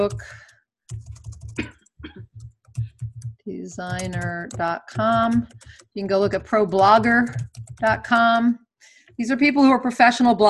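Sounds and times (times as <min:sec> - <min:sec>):
speech: 0:00.0 - 0:01.0, 0:03.5 - 0:08.6, 0:09.2 - 0:10.4
computer keyboard typing a web address: 0:00.0 - 0:08.5.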